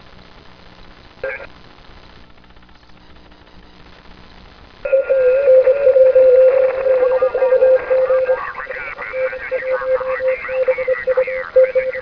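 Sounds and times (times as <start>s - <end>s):
SSB radio interference on the 160m band: 1.2s - 1.5s, 4.9s - 12.0s.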